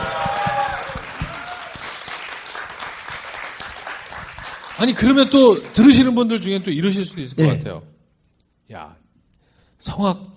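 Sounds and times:
audience applause: 0.0 - 6.8
speech: 4.8 - 7.9, 8.7 - 9.0, 9.8 - 10.3.

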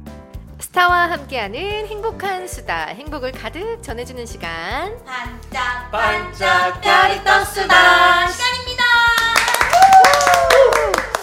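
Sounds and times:
speech: 0.6 - 8.6
audience clapping: 9.1 - 11.2.

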